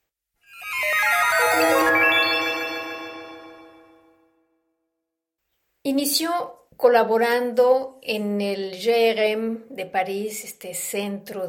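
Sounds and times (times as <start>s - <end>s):
airport announcement electronic chime jingle: 0.4s - 4.6s
speech: 5.9s - 11.4s.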